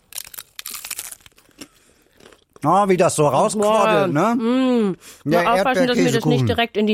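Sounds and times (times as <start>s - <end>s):
crunchy bites into a crisp taco shell filled with strawberries and quark: 0.0s - 2.5s
speech: 2.6s - 6.9s.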